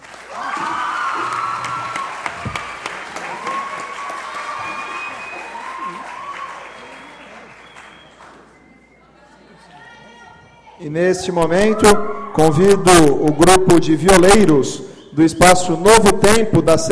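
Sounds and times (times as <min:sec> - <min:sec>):
audience applause: 0:00.0 - 0:08.6
speech: 0:10.9 - 0:16.9.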